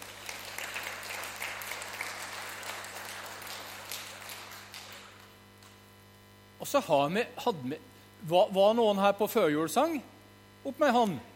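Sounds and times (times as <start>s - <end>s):
audience applause: 0.0s - 5.4s
speech: 6.6s - 11.3s.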